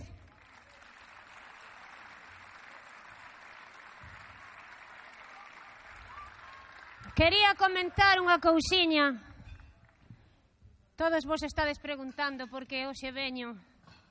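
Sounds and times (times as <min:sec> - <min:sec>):
audience applause: 0:00.0 - 0:08.4
speech: 0:07.1 - 0:09.3, 0:11.0 - 0:13.7.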